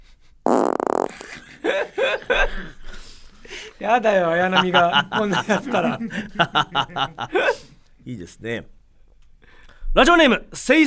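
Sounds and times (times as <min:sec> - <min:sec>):
loud buzzy fart: 0:00.5 - 0:01.4
giggling: 0:01.2 - 0:03.0, 0:04.4 - 0:07.7
speech: 0:01.7 - 0:02.8, 0:03.8 - 0:08.8, 0:10.0 - 0:10.8.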